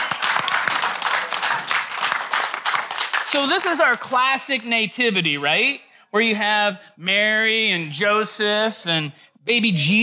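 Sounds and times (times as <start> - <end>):
crowd applauding: 0.0 - 4.1
speech: 3.3 - 10.0.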